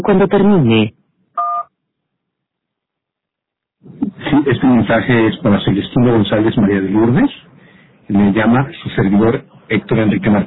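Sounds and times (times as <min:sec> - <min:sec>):
speech: 0:00.0 - 0:01.0, 0:03.8 - 0:07.5, 0:08.1 - 0:10.4
two-pitched electronic voicemail telephone beep: 0:01.4 - 0:01.7.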